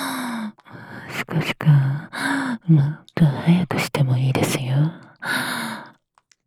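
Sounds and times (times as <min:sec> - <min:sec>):
whispering: 0:01.0 - 0:05.2.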